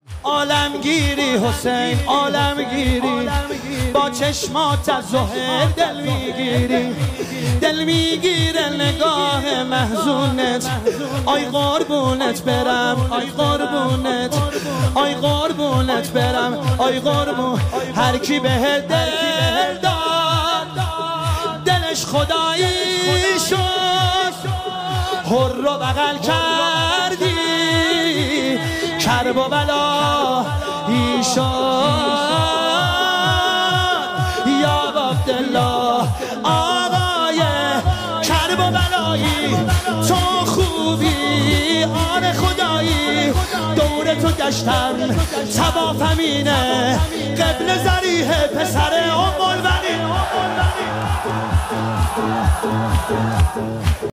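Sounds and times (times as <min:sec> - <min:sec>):
devotional singing: 0:00.0 - 0:54.1.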